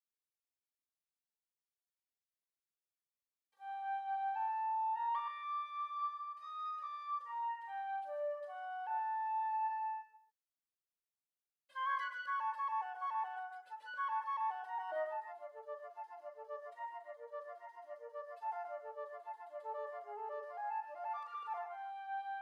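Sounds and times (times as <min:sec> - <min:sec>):
flute: 0:03.6 - 0:10.3, 0:11.7 - 0:22.4.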